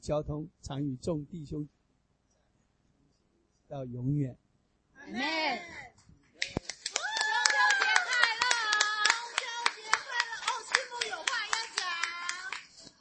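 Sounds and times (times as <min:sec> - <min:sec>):
speech: 0:00.0 - 0:01.8, 0:03.7 - 0:04.4, 0:05.0 - 0:05.8
audience clapping hands: 0:06.4 - 0:12.9.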